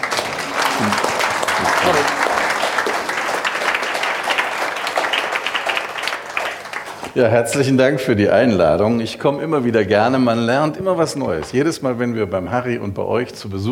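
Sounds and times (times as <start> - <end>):
audience applause: 0.0 - 7.1
speech: 0.8 - 2.3, 7.2 - 13.6.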